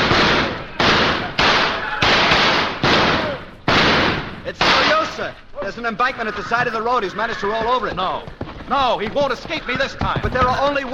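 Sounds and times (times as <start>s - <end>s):
gunfire sound effect in a radio drama: 0.0s - 5.3s
speech: 5.3s - 10.9s.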